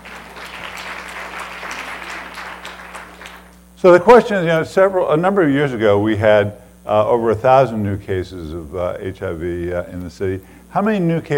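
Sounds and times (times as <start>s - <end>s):
crowd applauding: 0.0s - 3.6s
speech: 3.8s - 11.3s.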